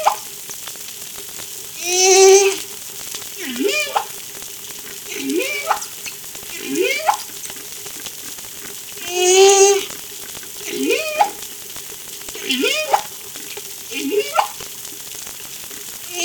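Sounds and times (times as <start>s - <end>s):
humpback whale song off La Réunion: 1.8s - 2.7s, 3.4s - 4.2s, 5.1s - 7.4s, 9.0s - 10.0s, 10.6s - 11.5s, 12.4s - 13.2s, 13.9s - 14.7s.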